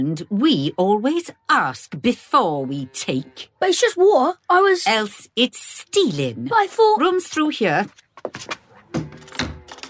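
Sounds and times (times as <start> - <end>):
speech: 0.0 - 9.0
narrow door knocks and thunks: 8.2 - 9.7
narrow door creaking open: 8.2 - 9.8.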